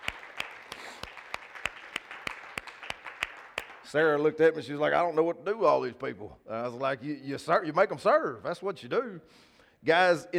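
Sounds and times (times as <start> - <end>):
audience applause: 0.0 - 4.0
speech: 3.9 - 10.3.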